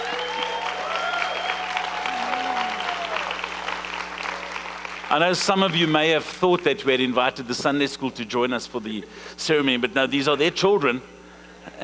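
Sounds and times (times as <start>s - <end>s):
audience clapping for children: 0.0s - 6.3s
voices calling out: 2.0s - 3.2s
speech: 5.1s - 11.2s.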